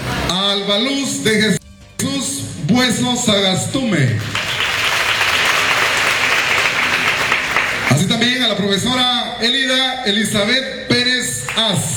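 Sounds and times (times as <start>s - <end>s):
speech: 0.5s - 1.6s, 2.7s - 4.5s, 8.5s - 11.9s
audience applause: 4.2s - 8.2s.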